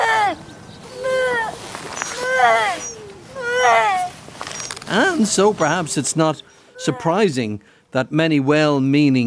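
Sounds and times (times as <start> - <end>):
grey seal pup crying: 0.0 - 5.8
speech: 5.2 - 9.2.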